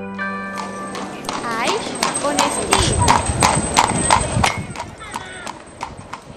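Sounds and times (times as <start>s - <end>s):
horse hooves clip-clopping in an encamisada horse parade: 0.2s - 6.3s
voices: 0.9s - 5.7s.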